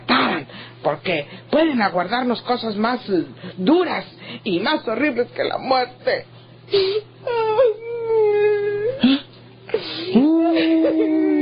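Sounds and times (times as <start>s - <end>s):
speech: 0.8s - 7.4s
person wailing and sobbing: 6.8s - 11.4s.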